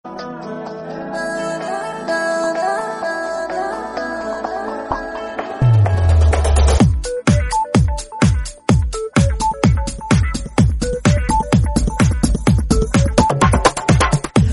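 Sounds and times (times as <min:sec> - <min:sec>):
Telugu background music ringtone: 0:00.1 - 0:14.5.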